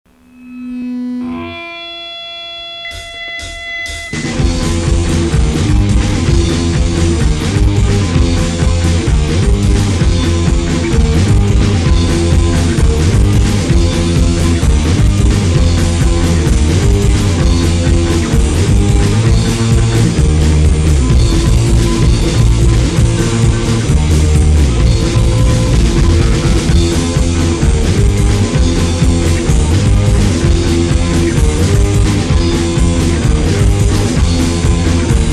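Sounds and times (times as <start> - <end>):
instrumental music: 0.1 - 35.3.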